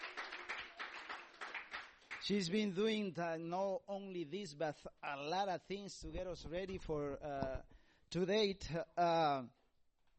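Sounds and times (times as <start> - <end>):
church congregation clapping: 0.0 - 2.6
speech: 2.2 - 9.6.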